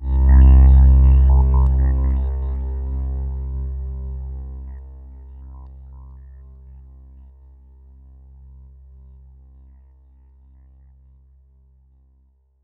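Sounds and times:
synth line: 0.0s - 6.8s.

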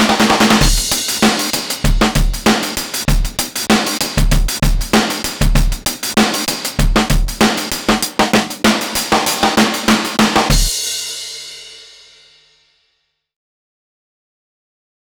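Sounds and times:
shuffle rhythm: 0.0s - 10.7s.

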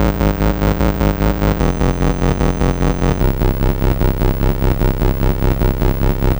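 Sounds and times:
Atari 2600 chiptune bass: 0.0s - 6.3s.

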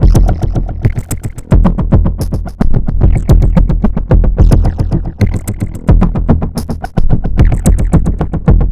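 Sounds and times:
strange drums: 0.0s - 8.7s.

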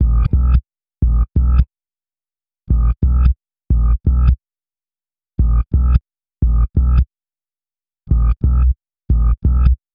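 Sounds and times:
hip-hop bass: 0.0s - 1.6s, 2.7s - 4.4s, 5.4s - 7.0s, 8.1s - 9.8s.

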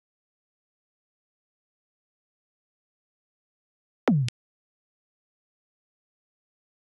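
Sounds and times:
drum loop with pitched toms: 4.1s - 4.3s.

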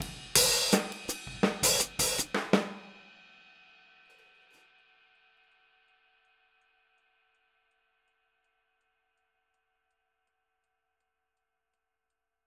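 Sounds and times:
boogaloo outro hi-hat: 0.0s - 2.9s
boogaloo outro drums: 0.0s - 3.7s.

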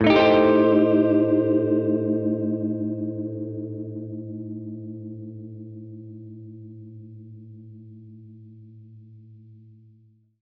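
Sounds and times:
Gretsch guitar A7b5 chord: 0.0s - 6.9s.

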